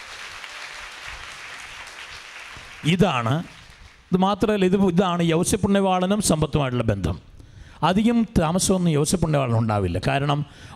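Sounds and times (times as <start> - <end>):
congregation clapping at a Marian covenant church service: 0.0 - 4.2
speech: 2.8 - 10.7.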